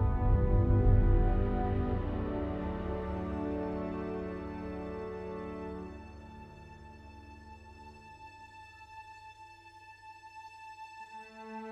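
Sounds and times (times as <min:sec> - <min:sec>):
world music: 0:00.0 - 0:07.0.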